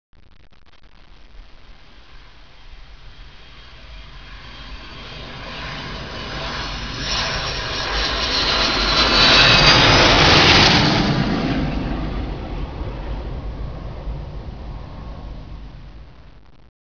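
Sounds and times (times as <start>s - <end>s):
jet aircraft: 1.6s - 16.4s.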